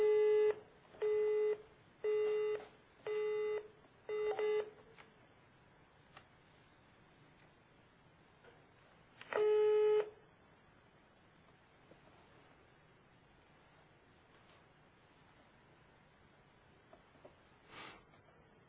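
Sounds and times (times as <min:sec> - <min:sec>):
telephone call tones while ringing a company: 0:00.0 - 0:04.8
hiss: 0:00.0 - 0:18.6.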